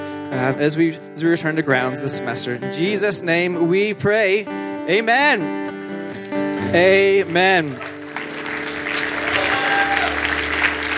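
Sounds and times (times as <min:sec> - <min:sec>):
speech: 0:00.3 - 0:05.8, 0:06.7 - 0:08.0
audience applause: 0:07.5 - 0:10.9.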